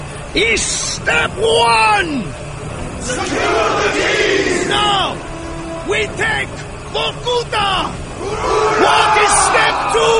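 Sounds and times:
speech: 0:00.4 - 0:02.4, 0:03.0 - 0:05.3, 0:05.9 - 0:10.1
crowd of prisoners shouting: 0:03.0 - 0:10.1.

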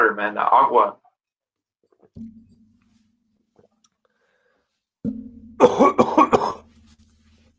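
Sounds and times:
speech: 0:00.2 - 0:01.0, 0:05.0 - 0:06.6
coughing fit: 0:05.6 - 0:06.7.

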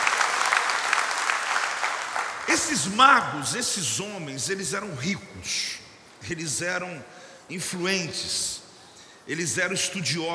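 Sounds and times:
audience applause: 0:00.0 - 0:02.8
speech: 0:02.5 - 0:08.6, 0:09.3 - 0:10.3.

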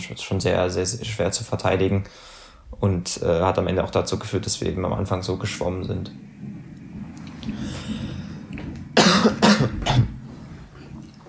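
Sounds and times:
speech: 0:00.0 - 0:06.4
person coughing: 0:09.0 - 0:10.2.

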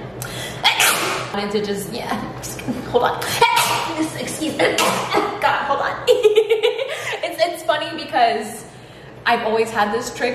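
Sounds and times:
fake sneeze on command: 0:00.7 - 0:01.3, 0:03.3 - 0:04.0, 0:04.8 - 0:05.3
speech: 0:01.3 - 0:06.3, 0:07.4 - 0:08.7, 0:09.3 - 0:10.3.

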